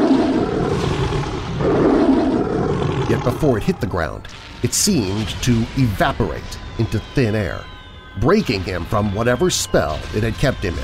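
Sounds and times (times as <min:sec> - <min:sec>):
long unearthly deep roaring howl: 0:00.0 - 0:03.9
speech: 0:03.2 - 0:10.8.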